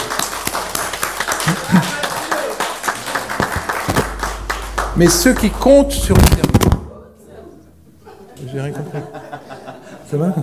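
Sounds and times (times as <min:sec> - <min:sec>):
audience applauding: 0:00.0 - 0:06.4
laughter: 0:01.3 - 0:02.4, 0:08.0 - 0:10.4
speech: 0:01.5 - 0:01.9, 0:05.0 - 0:06.5, 0:10.1 - 0:10.4.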